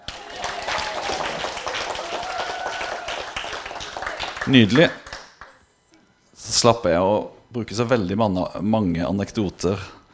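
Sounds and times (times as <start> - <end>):
audience applause: 0.0 - 5.6
speech: 4.4 - 5.0, 6.6 - 10.0.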